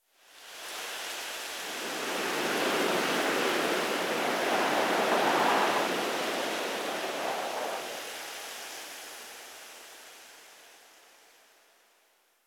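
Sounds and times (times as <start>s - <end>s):
wind whistling through leaves: 0.3s - 10.4s.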